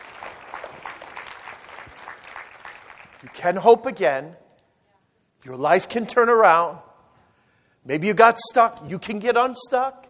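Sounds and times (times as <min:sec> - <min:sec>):
audience clapping hands: 0:00.0 - 0:03.6
speech: 0:03.2 - 0:04.4, 0:05.4 - 0:06.9, 0:07.8 - 0:10.0.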